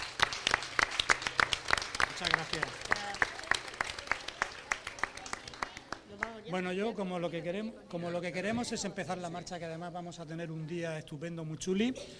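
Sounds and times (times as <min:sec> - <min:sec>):
audience applause: 0:00.0 - 0:06.3
speech: 0:02.2 - 0:03.2, 0:06.5 - 0:12.1.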